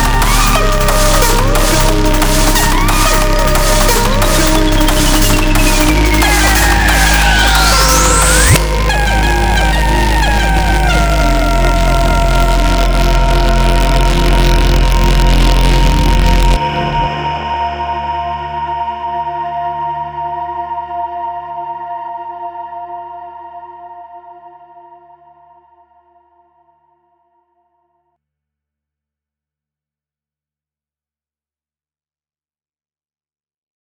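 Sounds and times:
aquatic instrumental ambient music: 0.0s - 22.3s.

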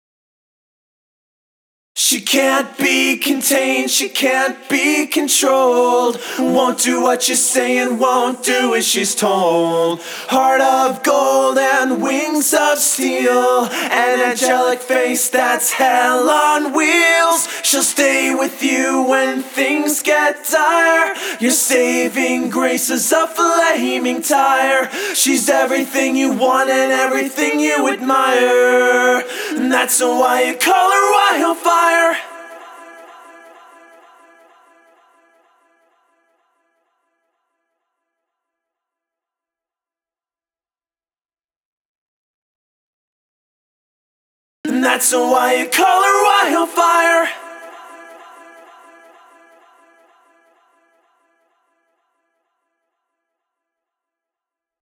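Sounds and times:
a cappella singing: 2.0s - 35.9s, 44.6s - 51.1s.

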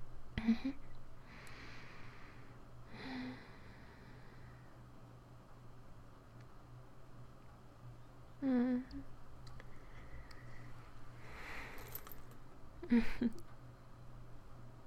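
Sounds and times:
steady low hum: 0.0s - 14.8s
necklace rattling and clinking against a microphone: 11.6s - 12.5s.

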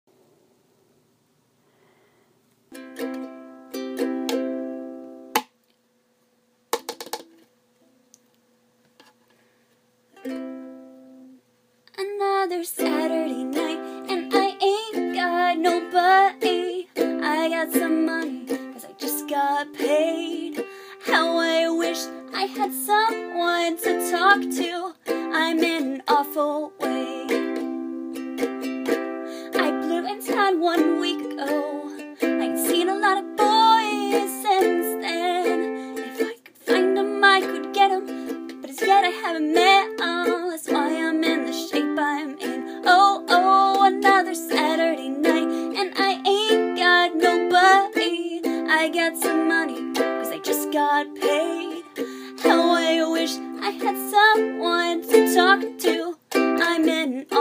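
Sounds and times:
ukulele: 2.7s - 5.6s, 6.7s - 8.0s, 10.2s - 11.4s, 12.0s - 57.3s
person singing: 11.9s - 57.3s.

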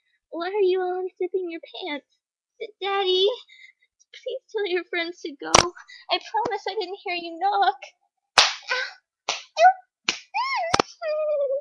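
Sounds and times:
speech: 0.3s - 8.0s, 11.0s - 11.5s
hitting, slapping blows: 8.4s - 11.0s.

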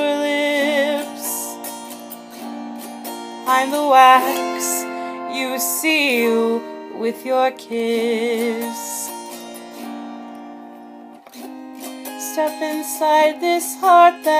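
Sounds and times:
autoharp playing a little love song: 0.0s - 14.3s.

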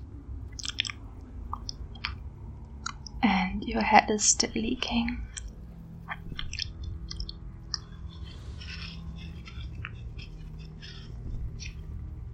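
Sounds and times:
wet licking and chewing as someone eats: 0.6s - 2.2s, 6.1s - 11.9s
speech: 3.7s - 5.3s.

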